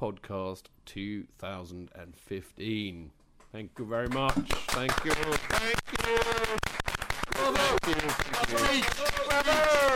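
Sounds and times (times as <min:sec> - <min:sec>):
speech: 0:00.0 - 0:06.6, 0:07.4 - 0:09.9
applause: 0:04.0 - 0:09.9.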